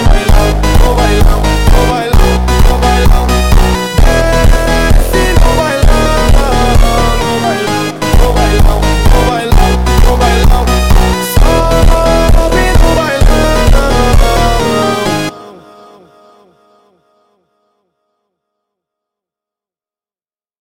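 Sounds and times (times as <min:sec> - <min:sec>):
phonk music: 0:00.0 - 0:16.0.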